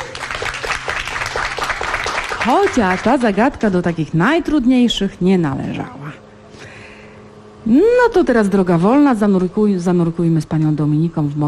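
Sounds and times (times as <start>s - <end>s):
studio audience applause on a radio quiz: 0.0s - 3.6s
speech: 2.4s - 6.0s, 7.6s - 11.4s.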